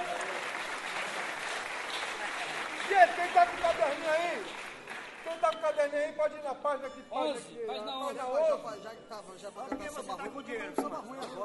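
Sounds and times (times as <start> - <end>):
crowd applause at a samba gathering: 0.0 - 5.5
speech: 2.9 - 11.4.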